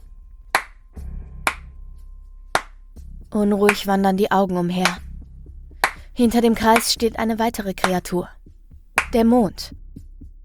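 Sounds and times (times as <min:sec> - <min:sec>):
sarcastic slow hand clapping: 0:00.6 - 0:00.8, 0:01.5 - 0:01.7, 0:02.6 - 0:02.8, 0:05.8 - 0:06.0, 0:09.0 - 0:09.2
speech: 0:03.4 - 0:05.0, 0:06.2 - 0:08.4, 0:09.1 - 0:09.8.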